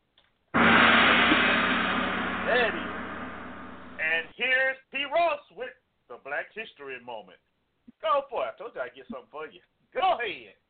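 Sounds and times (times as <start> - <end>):
gong struck as a segment cue: 0.6 - 4.1
speech: 6.6 - 10.6.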